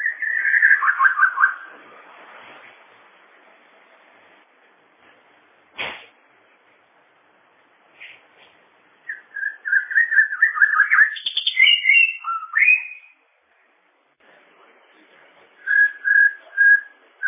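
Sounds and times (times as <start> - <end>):
bird warbling: 0.0 - 1.7, 9.1 - 13.2.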